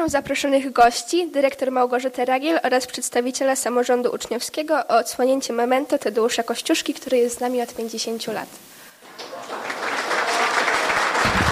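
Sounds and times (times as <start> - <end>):
speech: 0.0 - 8.8
crowd applauding: 9.0 - 11.5.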